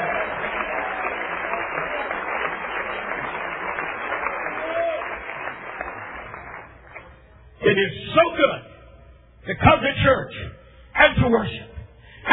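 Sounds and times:
audience clapping hands: 0.0s - 7.6s
speech: 7.8s - 8.7s, 9.5s - 11.7s.

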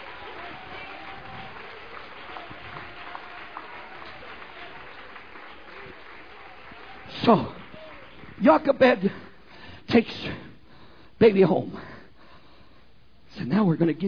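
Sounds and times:
audience applauding: 0.0s - 9.1s
speech: 7.3s - 7.6s, 8.4s - 9.2s, 9.9s - 10.5s, 11.2s - 11.9s, 13.4s - 14.0s.

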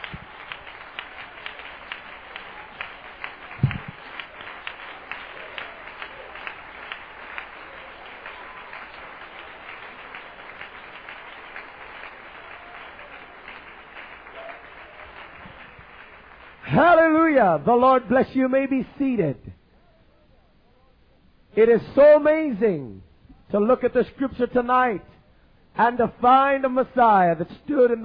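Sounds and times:
crowd clapping hands in praise: 0.0s - 18.6s
speech: 16.8s - 19.6s, 21.6s - 25.1s, 25.8s - 28.0s.

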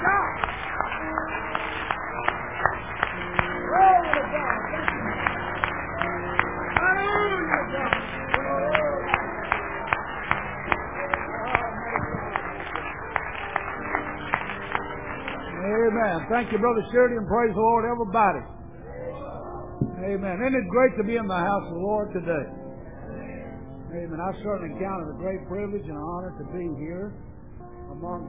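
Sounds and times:
audience hand clapping: 0.0s - 17.6s
speech: 16.3s - 18.6s, 20.1s - 22.6s, 24.0s - 27.3s, 28.0s - 28.2s.

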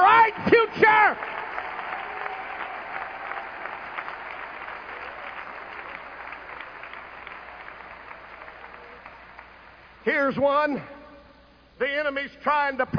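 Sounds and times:
audience applause: 0.8s - 10.0s
speech: 10.0s - 11.0s, 11.8s - 12.9s.

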